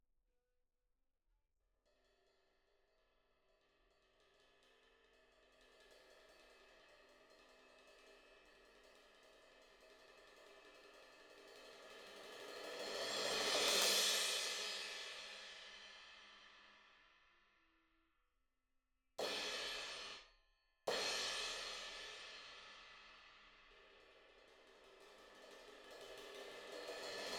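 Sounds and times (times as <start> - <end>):
cymbal: 4.6 - 17.2, 19.2 - 20.3, 20.9 - 27.3.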